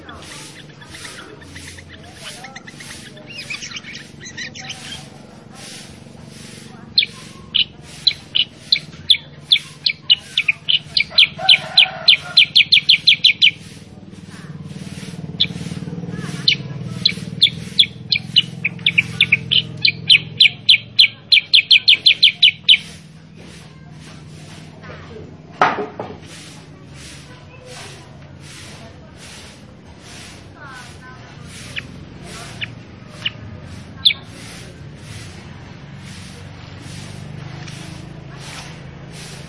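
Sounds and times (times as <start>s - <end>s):
sooty-headed bulbul high chirps: 0.0s - 13.9s, 14.8s - 23.1s, 31.5s - 35.2s.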